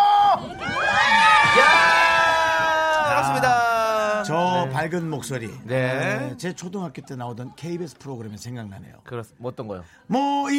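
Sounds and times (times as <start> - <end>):
studio audience cheering and screaming: 0.0 - 4.4
speech: 4.8 - 10.5.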